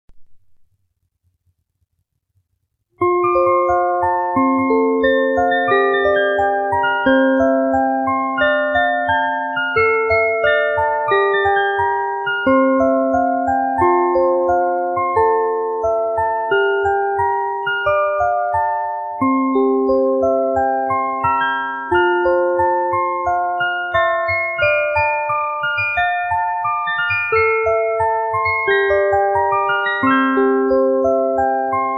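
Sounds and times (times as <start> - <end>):
music box: 3.0 - 31.9.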